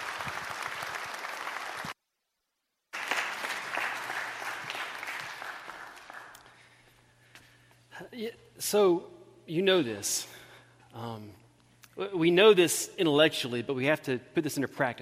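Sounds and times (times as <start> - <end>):
audience applause: 0.0 - 2.0, 3.0 - 6.5
speech: 8.2 - 10.4, 11.0 - 11.4, 12.0 - 15.0.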